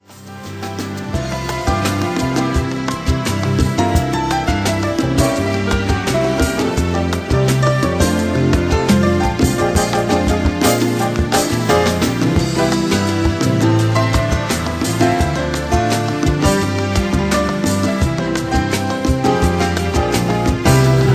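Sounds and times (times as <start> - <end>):
piano rhythm: 0.0 - 21.1.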